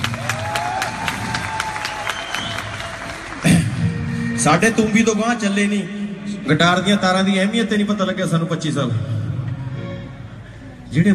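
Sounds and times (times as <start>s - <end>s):
audience applause at a Punjabi gathering: 0.0s - 4.4s
speech: 4.4s - 9.2s, 10.9s - 11.1s.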